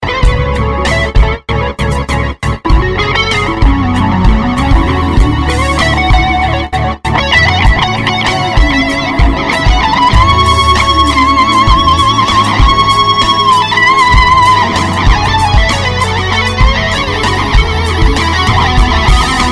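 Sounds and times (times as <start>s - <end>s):
rock guitar: 0.0s - 19.4s.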